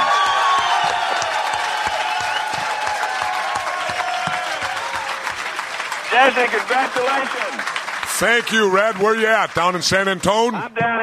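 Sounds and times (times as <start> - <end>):
cheers and whoops: 0.0 - 6.5
crowd applause: 0.0 - 10.6
speech: 6.2 - 7.5, 8.2 - 11.0.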